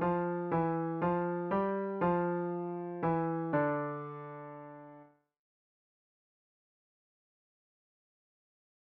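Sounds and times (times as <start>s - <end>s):
piano piece: 0.0s - 5.2s.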